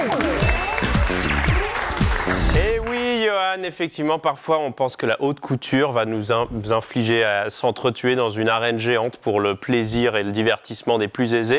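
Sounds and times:
television studio audience applause: 0:00.0 - 0:03.5
speech: 0:03.6 - 0:11.5.

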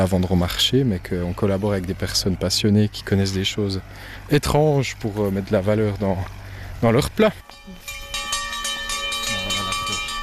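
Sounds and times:
speech: 0:00.0 - 0:07.8
meal bell ringing: 0:07.2 - 0:10.2.

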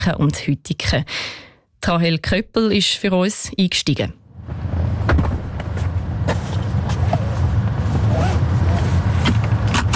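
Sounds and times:
speech: 0:00.0 - 0:04.6
robotaxi car doors opening and closing: 0:04.5 - 0:09.9.

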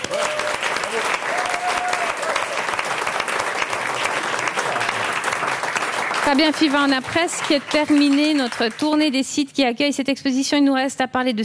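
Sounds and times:
audience applause: 0:00.0 - 0:09.1
speech: 0:06.3 - 0:11.4.

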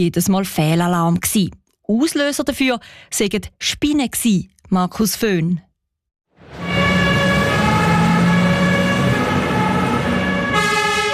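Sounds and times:
speech: 0:00.0 - 0:05.7
fire engine sirens leaving station: 0:06.4 - 0:11.1.

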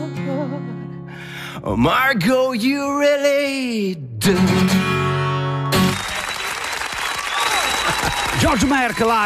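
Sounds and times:
speech: 0:01.6 - 0:05.1, 0:08.5 - 0:09.2
audience applause: 0:05.6 - 0:09.2.

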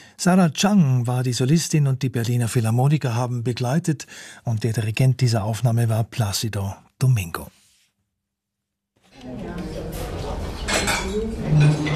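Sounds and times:
speech: 0:00.2 - 0:07.6, 0:09.2 - 0:09.7
busy murmur of voices: 0:09.1 - 0:11.9
dishes and cutlery clattering in a small restaurant kitchen: 0:09.7 - 0:11.9.

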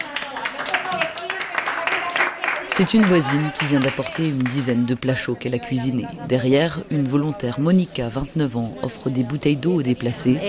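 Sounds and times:
village residents clapping for a neighbour who brought hot meals: 0:00.0 - 0:04.9
speech: 0:02.8 - 0:10.4.

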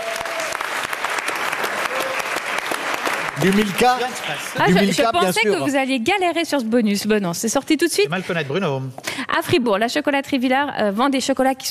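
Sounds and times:
crowd clapping: 0:00.0 - 0:05.6
speech: 0:03.4 - 0:11.6.

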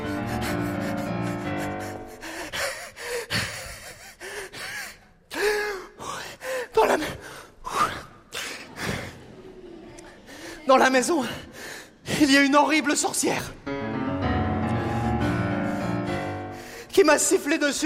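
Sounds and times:
out-of-breath panting of running man: 0:00.0 - 0:09.2, 0:14.7 - 0:16.9
speech: 0:10.7 - 0:11.5, 0:12.2 - 0:13.7, 0:17.0 - 0:17.8.

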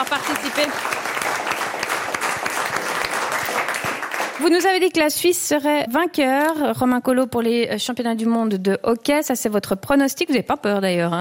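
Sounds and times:
speech: 0:00.0 - 0:01.6, 0:04.4 - 0:11.1
audience applause: 0:00.0 - 0:04.7.

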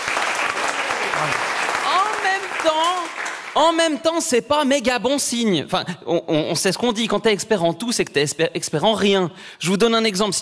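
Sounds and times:
audience clapping: 0:00.0 - 0:04.3
speech: 0:01.2 - 0:01.5, 0:02.3 - 0:10.4.

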